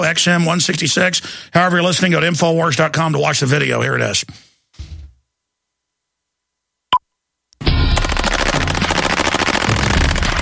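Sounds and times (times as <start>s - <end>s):
speech: 0.0s - 4.9s
machine gun fire: 7.7s - 10.4s.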